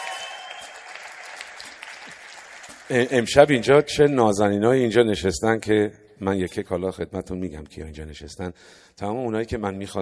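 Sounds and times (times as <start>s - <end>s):
audience applause in honor of a doctor: 0.0s - 3.1s
speech: 2.9s - 10.0s.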